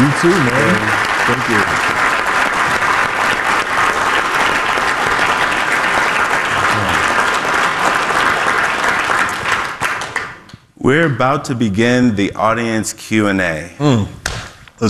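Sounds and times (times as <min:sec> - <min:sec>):
audience applause after speakers are introduced at a panel event: 0:00.0 - 0:10.5
speech: 0:00.2 - 0:01.9, 0:10.9 - 0:14.2.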